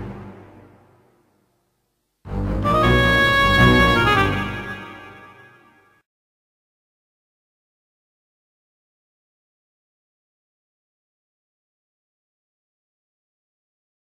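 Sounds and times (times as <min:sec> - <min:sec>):
flute: 0:02.4 - 0:06.0.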